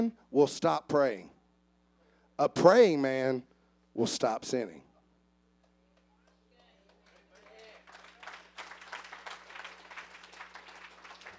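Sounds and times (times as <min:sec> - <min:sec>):
speech: 0:00.0 - 0:01.3, 0:02.4 - 0:04.8
faint hum: 0:00.0 - 0:11.3
audience clapping: 0:06.2 - 0:11.3.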